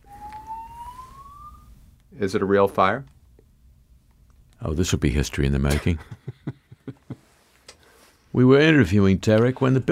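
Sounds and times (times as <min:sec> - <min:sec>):
fire alarm: 0:00.0 - 0:01.8
speech: 0:02.2 - 0:03.2, 0:04.6 - 0:06.2, 0:08.4 - 0:09.9.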